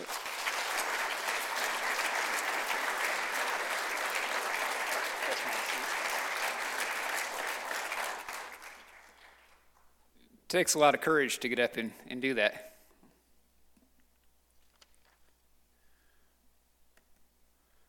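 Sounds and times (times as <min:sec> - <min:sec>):
audience applause: 0:00.0 - 0:09.7
speech: 0:10.5 - 0:12.7.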